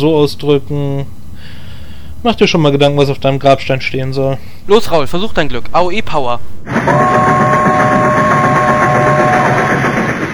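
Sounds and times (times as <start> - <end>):
speech: 0.0 - 1.6, 2.2 - 7.4
steady high squealing tone: 0.0 - 10.0
train rushing past: 6.6 - 10.3.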